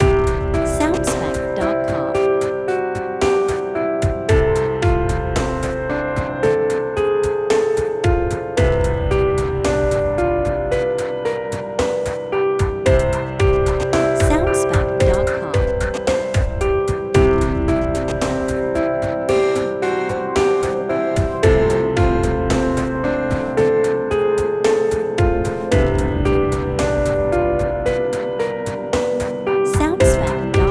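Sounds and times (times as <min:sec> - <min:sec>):
rainy day lounge music loop: 0:00.0 - 0:30.6.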